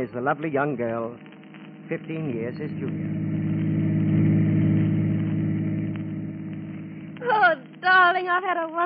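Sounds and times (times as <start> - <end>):
speech: 0.0 - 1.3, 1.9 - 3.6, 7.2 - 8.8
car engine running while driving: 1.9 - 7.5.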